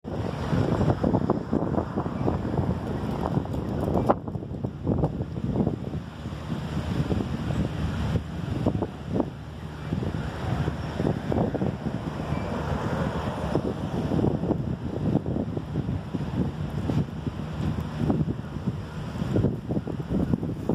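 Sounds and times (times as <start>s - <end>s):
wind buffeting the microphone at a bus stop before a thunderstorm: 0.0s - 20.7s.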